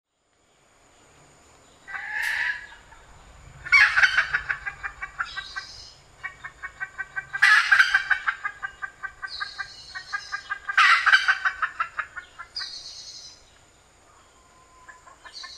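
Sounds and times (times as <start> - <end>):
red junglefowl harsh calls: 1.9 - 13.2.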